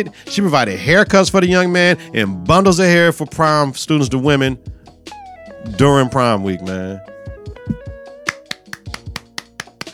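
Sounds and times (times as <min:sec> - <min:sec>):
speech: 0:00.0 - 0:04.8, 0:05.6 - 0:07.1
hand claps: 0:07.7 - 0:09.9.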